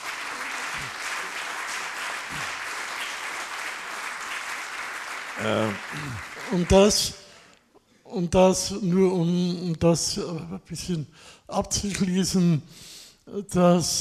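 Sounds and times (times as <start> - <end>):
crowd clapping: 0.0 - 7.5
speech: 5.4 - 7.2, 8.1 - 13.9.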